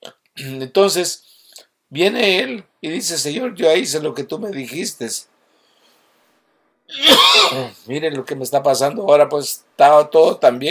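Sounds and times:
speech: 0:00.4 - 0:05.4, 0:06.9 - 0:10.6
cough: 0:06.9 - 0:07.8.

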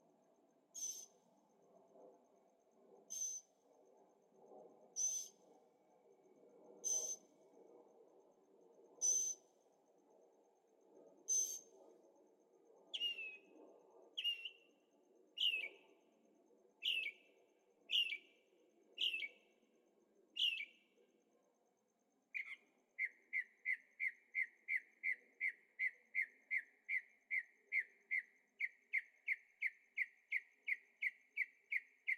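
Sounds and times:
bird chirping: 0:00.8 - 0:01.1, 0:05.0 - 0:05.3, 0:13.0 - 0:13.4, 0:14.2 - 0:14.6, 0:15.4 - 0:15.8, 0:16.8 - 0:17.2, 0:17.9 - 0:18.3, 0:19.0 - 0:19.4, 0:20.4 - 0:20.7, 0:22.4 - 0:32.1.

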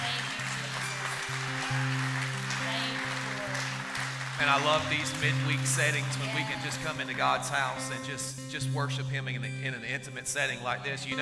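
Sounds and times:
crowd applause: 0:00.0 - 0:08.2
speech: 0:04.4 - 0:11.2.

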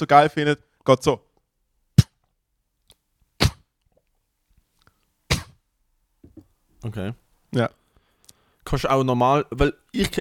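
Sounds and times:
speech: 0:00.0 - 0:01.3, 0:06.8 - 0:07.8, 0:08.7 - 0:10.1
person imitating a dog sneezing: 0:03.4 - 0:03.8, 0:05.3 - 0:05.6.

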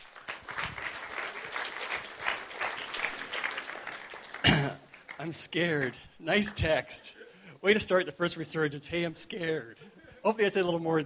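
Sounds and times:
audience applause at a Resurgence Edmonton evening gathering: 0:00.0 - 0:05.9
speech: 0:05.2 - 0:11.0.

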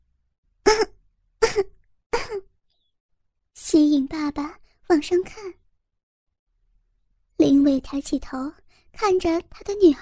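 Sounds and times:
soft coughs: 0:00.7 - 0:02.5
speech: 0:03.7 - 0:05.6, 0:07.6 - 0:10.0.

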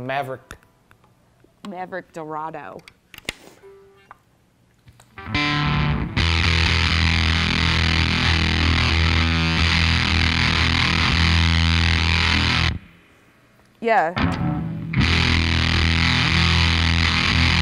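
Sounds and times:
speech: 0:00.0 - 0:00.6, 0:01.6 - 0:03.0, 0:13.8 - 0:14.5
heavily distorted electric guitar: 0:05.2 - 0:13.0, 0:14.2 - 0:17.6.

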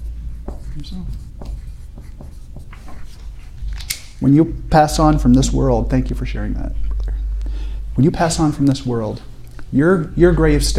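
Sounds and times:
handwriting strokes as something is noted down: 0:00.0 - 0:03.7
speech: 0:00.8 - 0:01.6, 0:04.2 - 0:06.8, 0:08.0 - 0:10.7.

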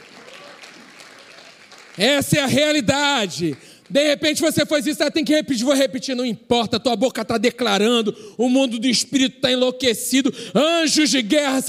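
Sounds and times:
audience applauding: 0:00.0 - 0:02.7
speech: 0:02.0 - 0:11.6.

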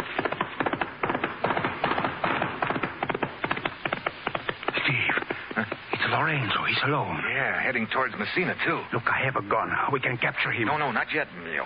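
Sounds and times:
approaching horse hoofbeats: 0:00.0 - 0:06.5
speech: 0:05.6 - 0:11.6.

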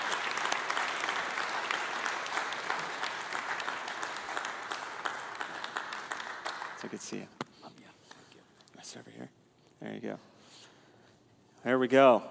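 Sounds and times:
church congregation applauding a guest speaker: 0:00.0 - 0:07.4
speech: 0:06.8 - 0:07.4, 0:08.9 - 0:10.3, 0:11.6 - 0:12.2.

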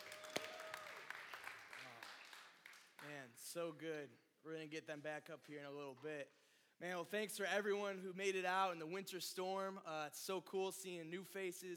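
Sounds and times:
audience applause for worship band: 0:00.0 - 0:03.0
speech: 0:03.0 - 0:11.7.

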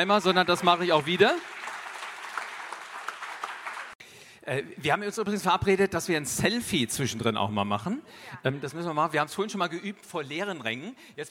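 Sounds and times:
speech: 0:00.0 - 0:01.6, 0:04.5 - 0:11.2
audience applause: 0:00.0 - 0:04.0.

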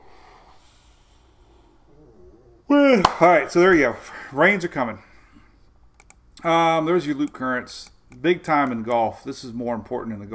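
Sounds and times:
person yawning: 0:01.9 - 0:02.9
speech: 0:02.9 - 0:05.1, 0:06.4 - 0:10.3.

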